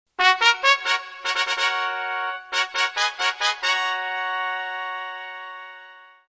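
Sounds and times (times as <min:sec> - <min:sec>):
brass fanfare flourish: 0:00.2 - 0:06.2.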